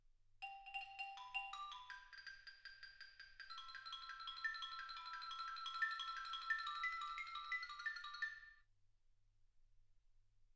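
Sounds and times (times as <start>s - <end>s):
xylophone: 0.4s - 8.6s.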